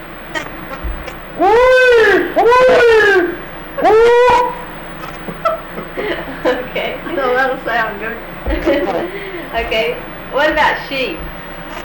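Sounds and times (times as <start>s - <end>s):
man's voice imitating hog calls: 0.3s - 4.8s
laughter: 0.4s - 11.8s
speech: 1.4s - 1.7s, 7.8s - 11.4s.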